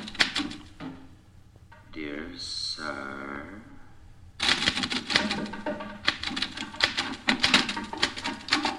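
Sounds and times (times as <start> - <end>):
typewriter typing: 0.0 - 0.8, 4.4 - 8.7
speech: 2.4 - 3.2.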